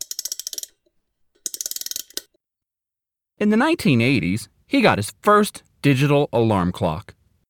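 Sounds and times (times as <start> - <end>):
wind-up watch mechanism being wound: 0.0 - 2.4
speech: 3.4 - 7.2.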